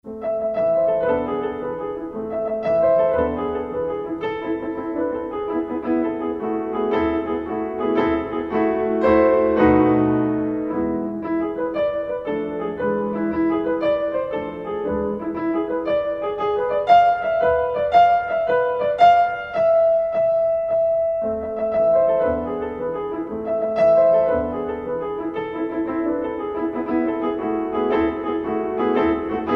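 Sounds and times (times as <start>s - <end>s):
etude in A minor: 0.2s - 29.5s.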